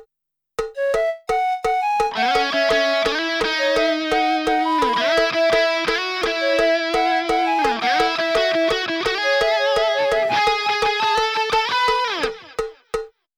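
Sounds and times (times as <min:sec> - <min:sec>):
mellow counter melody: 0:00.6 - 0:13.1.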